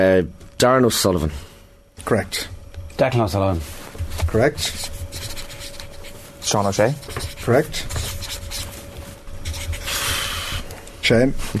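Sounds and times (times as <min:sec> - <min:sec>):
speech: 0:00.0 - 0:05.0, 0:06.5 - 0:08.0, 0:11.1 - 0:11.5
pen scribbling doodles on a paper page: 0:04.2 - 0:10.4.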